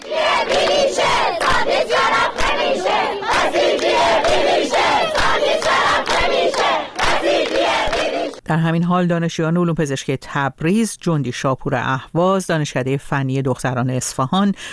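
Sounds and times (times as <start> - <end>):
students chanting at a protest rally at Razi University in Kermanshah: 0.0 - 8.4
speech: 8.5 - 14.7.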